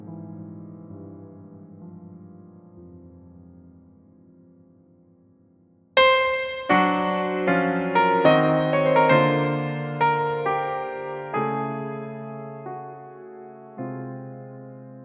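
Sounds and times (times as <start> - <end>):
prelude in F minor: 6.0 - 15.0.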